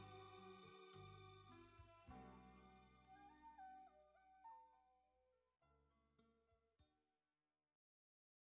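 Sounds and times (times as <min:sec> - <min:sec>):
strings pad: 0:00.0 - 0:03.6.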